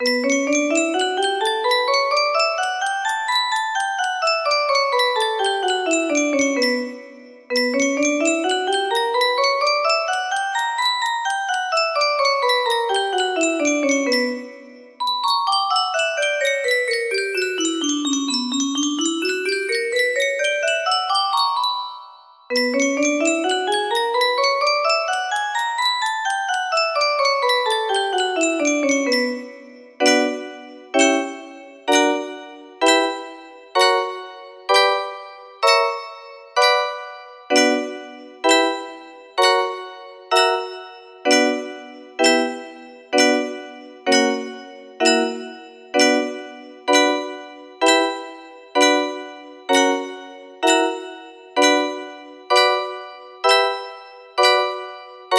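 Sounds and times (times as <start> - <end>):
melody in B minor: 0.0 - 55.3.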